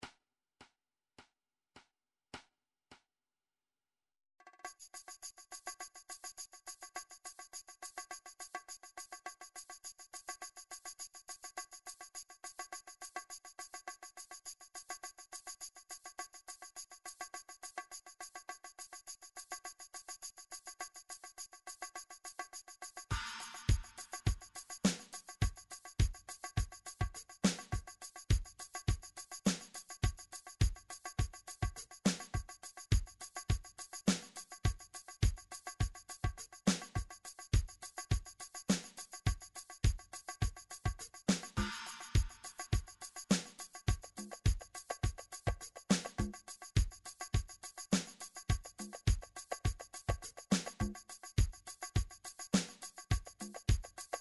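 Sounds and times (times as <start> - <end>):
MIDI Latin flamenco drum pattern: 23.1 - 51.6.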